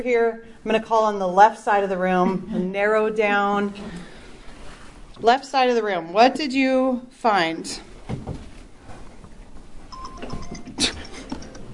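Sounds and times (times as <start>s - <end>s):
speech: 0.0s - 4.1s, 5.2s - 8.3s
phone text message notification chimes: 9.9s - 10.7s.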